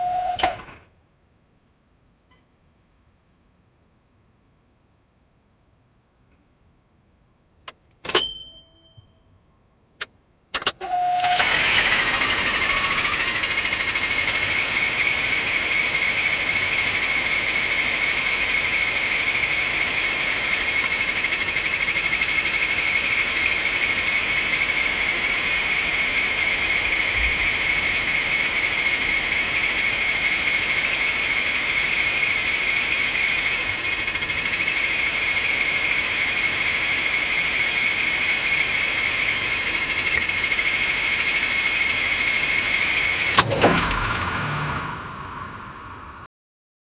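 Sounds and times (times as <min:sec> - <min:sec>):
internal combustion engine with repeated attempts to start: 0:10.6 - 0:46.1.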